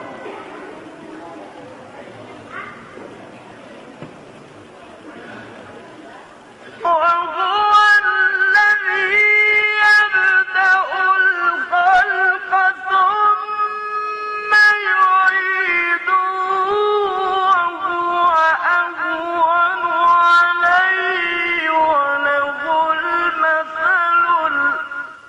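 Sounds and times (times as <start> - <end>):
Quran recitation: 6.7 - 25.2.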